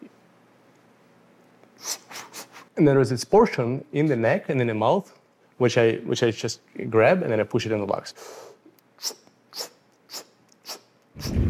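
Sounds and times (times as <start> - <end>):
speech: 2.8 - 9.2
full inhale in a breathing exercise demonstration for freediving lung training: 8.2 - 9.2.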